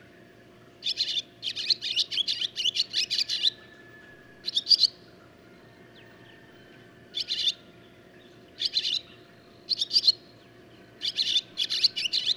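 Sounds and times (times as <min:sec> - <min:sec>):
barn swallow calling: 0:00.8 - 0:03.7, 0:04.4 - 0:05.0, 0:06.1 - 0:07.7, 0:08.6 - 0:12.3.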